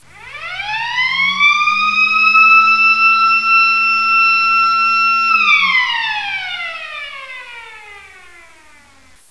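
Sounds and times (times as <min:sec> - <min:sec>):
siren: 0:00.0 - 0:09.2.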